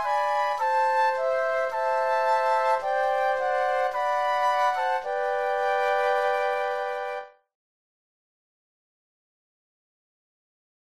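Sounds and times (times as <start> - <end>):
flute trio playing: 0.0 - 7.4.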